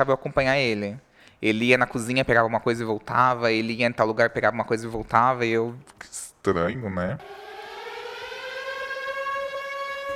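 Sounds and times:
speech: 0:00.0 - 0:07.5
electronic alarm ringing: 0:07.2 - 0:10.1.

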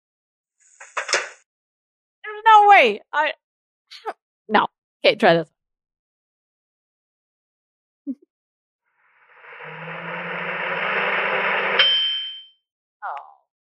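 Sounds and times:
speech: 0:02.8 - 0:05.5
microwave humming and whirring: 0:09.4 - 0:12.0
microwave beep: 0:11.7 - 0:12.5.

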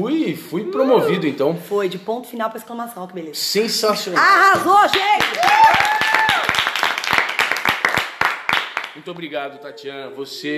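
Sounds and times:
speech: 0:00.0 - 0:06.0, 0:09.0 - 0:10.5
live hand clapping: 0:04.4 - 0:09.3.

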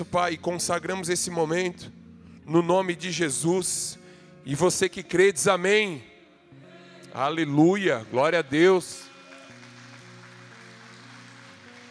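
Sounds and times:
speech: 0:00.0 - 0:06.1, 0:07.1 - 0:09.0
audience applauding: 0:09.0 - 0:11.9.

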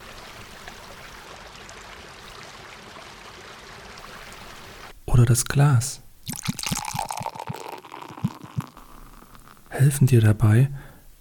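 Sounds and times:
flowing river water: 0:00.0 - 0:04.9, 0:06.3 - 0:09.4
speech: 0:05.2 - 0:06.5, 0:09.8 - 0:10.9.

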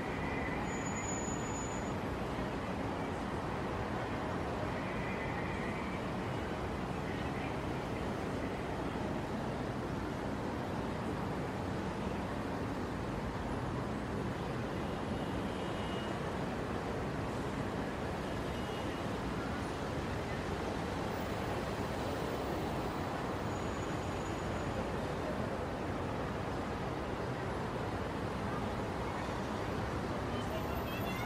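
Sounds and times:
heavy traffic rumble on the Brooklyn Bridge: 0:00.0 - 0:31.2.

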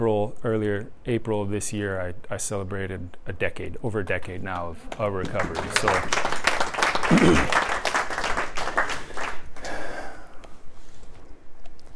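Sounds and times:
speech: 0:00.0 - 0:06.4, 0:07.1 - 0:07.7
audience clapping: 0:04.5 - 0:10.1.

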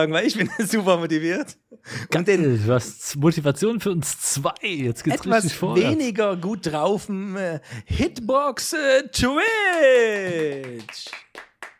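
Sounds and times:
speech: 0:00.0 - 0:11.2
laughter: 0:00.2 - 0:01.2
applause sound effect: 0:09.6 - 0:11.7.

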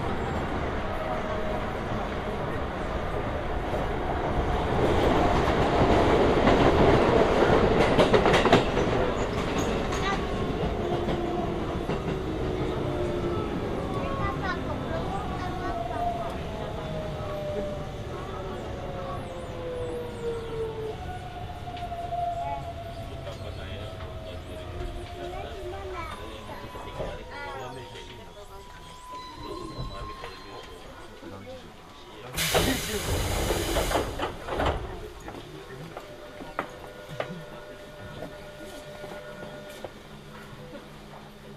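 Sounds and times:
Hokuso Railway train rumble: 0:00.0 - 0:41.5
faint voices: 0:00.0 - 0:41.5
hiss: 0:32.4 - 0:34.4.

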